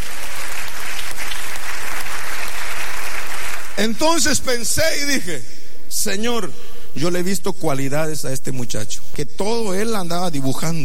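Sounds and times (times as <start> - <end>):
audience applause: 0.0 - 3.8
speech: 3.8 - 10.8.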